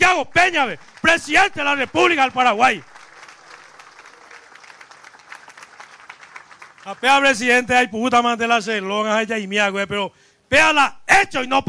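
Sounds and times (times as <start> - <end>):
speech: 0.2 - 2.9, 6.8 - 11.6
crowd applause: 0.4 - 7.3.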